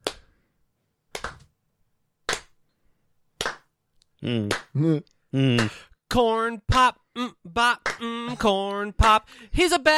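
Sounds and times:
hand clapping along: 0:00.0 - 0:00.3, 0:01.1 - 0:01.5, 0:02.3 - 0:02.6, 0:03.4 - 0:03.7, 0:04.4 - 0:04.8, 0:05.6 - 0:05.8, 0:07.8 - 0:09.2
person singing: 0:04.2 - 0:09.9
speech: 0:04.2 - 0:09.9.

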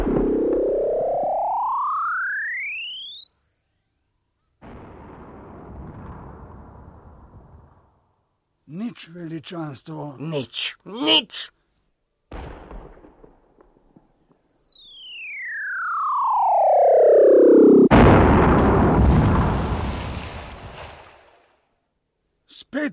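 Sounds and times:
cannon shot descending whistle: 0:00.3 - 0:04.1, 0:14.0 - 0:17.9
cannon firing boom: 0:04.6 - 0:07.9, 0:12.3 - 0:13.8, 0:17.9 - 0:21.3
speech: 0:08.9 - 0:11.6.

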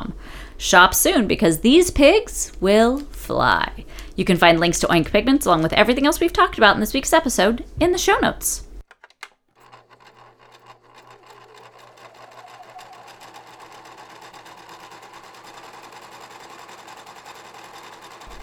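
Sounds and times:
speech: 0:00.6 - 0:08.7
sewing machine running: 0:09.5 - 0:18.4.

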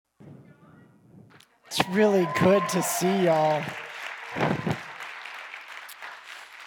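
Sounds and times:
speech: 0:01.7 - 0:03.8
crowd applauding: 0:01.7 - 0:06.6.

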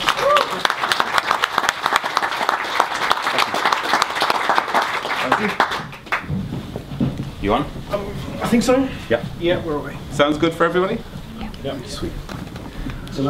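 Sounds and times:
audience applause: 0:00.0 - 0:06.4
speech: 0:07.5 - 0:12.3.

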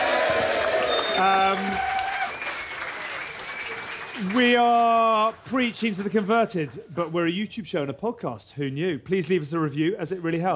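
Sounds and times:
audience cheering and clapping: 0:00.0 - 0:06.7
speech: 0:01.2 - 0:02.0, 0:04.2 - 0:10.5.

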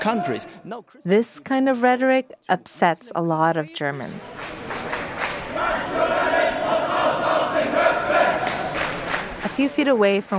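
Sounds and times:
crowd of protesters shouting in unison: 0:00.0 - 0:00.6, 0:05.4 - 0:09.1
speech: 0:00.0 - 0:04.6, 0:09.6 - 0:10.3.

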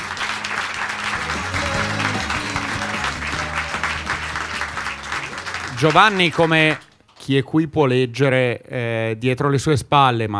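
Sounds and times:
audience applause: 0:00.0 - 0:07.0
low music melody: 0:00.2 - 0:06.4
speech: 0:05.8 - 0:10.3.

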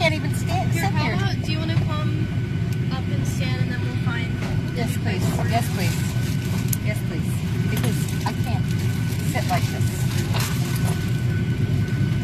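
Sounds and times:
airplane engines droning while the plane taxis: 0:00.0 - 0:12.2.

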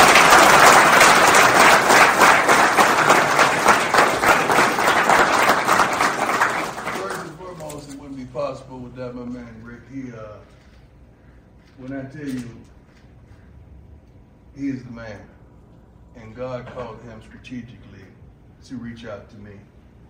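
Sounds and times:
crowd applauding Colorado's new head football coach: 0:00.0 - 0:07.4
speech: 0:11.8 - 0:12.8, 0:14.6 - 0:15.3, 0:16.2 - 0:17.8, 0:18.6 - 0:19.7.

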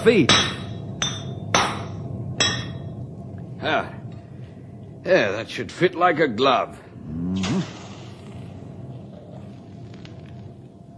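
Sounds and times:
speech: 0:00.0 - 0:00.6, 0:05.0 - 0:07.4
low rumble: 0:00.0 - 0:10.9
hammer striking a horseshoe on a horse: 0:00.3 - 0:02.9.

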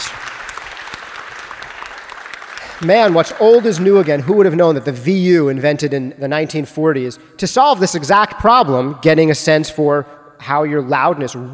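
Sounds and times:
audience clapping: 0:00.0 - 0:05.0
speech: 0:02.8 - 0:11.5.

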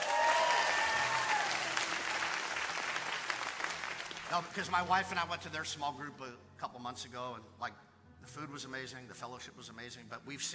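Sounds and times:
audience clapping together: 0:00.0 - 0:05.0
speech: 0:04.3 - 0:10.5.

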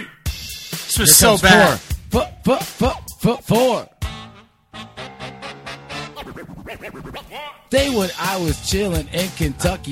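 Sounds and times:
rhythmic music track: 0:00.0 - 0:09.9
DJ record scratching: 0:01.0 - 0:01.8, 0:05.7 - 0:07.7
speech: 0:01.0 - 0:03.9, 0:06.8 - 0:09.9.

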